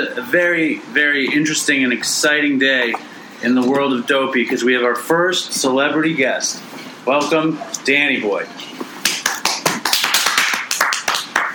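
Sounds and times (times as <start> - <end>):
speech: 0.0 - 8.8
studio audience applause: 9.4 - 11.5.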